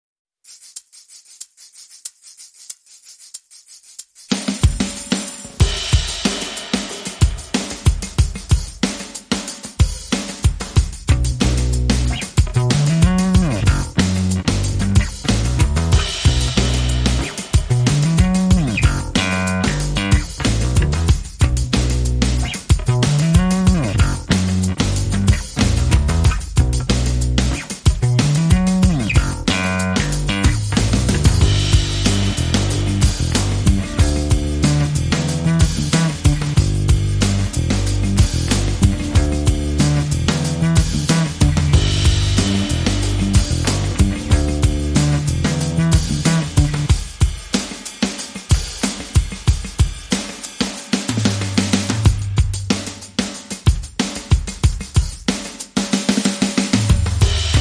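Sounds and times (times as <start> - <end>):
drums: 2.0 - 57.6
bass: 10.9 - 47.0, 51.1 - 53.0, 56.7 - 57.6.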